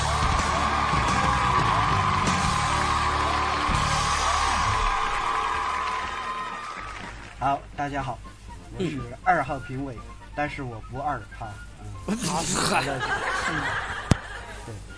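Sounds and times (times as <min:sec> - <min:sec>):
audience applause: 0:00.0 - 0:07.4
speech: 0:07.4 - 0:13.9, 0:14.7 - 0:14.9
laughter: 0:12.2 - 0:14.8.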